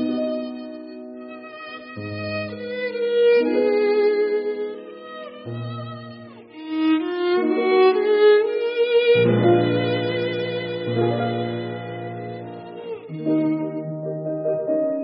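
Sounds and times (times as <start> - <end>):
violin: 0.0 - 15.0.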